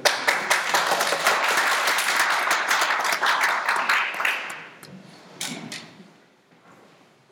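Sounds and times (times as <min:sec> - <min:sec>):
people clapping: 0:00.0 - 0:04.9.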